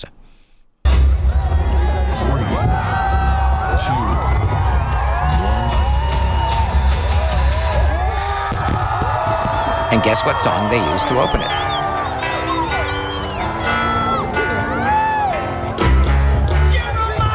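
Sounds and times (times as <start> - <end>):
huge holiday crowd at a fireworks show: 0.9 - 17.3
whistles: 9.6 - 12.1, 12.7 - 13.6
speech: 9.9 - 11.6.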